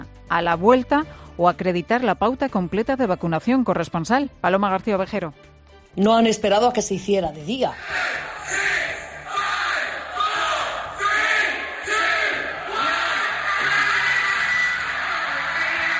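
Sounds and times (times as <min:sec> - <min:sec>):
speech: 0:00.3 - 0:08.3
London nightclub crowd shouting freedom at midnight: 0:07.8 - 0:15.9.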